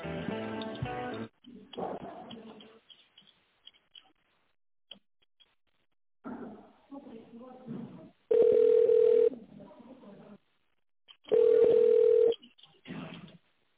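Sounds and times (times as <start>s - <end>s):
telephone ringback tone while waiting for a lift company to answer: 8.3s - 9.3s, 11.3s - 12.4s.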